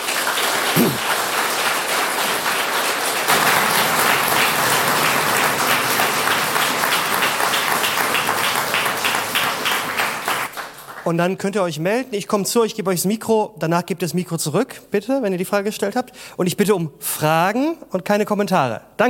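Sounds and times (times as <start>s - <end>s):
audience applause: 0.0s - 11.0s
speech: 0.8s - 1.1s, 11.1s - 19.0s.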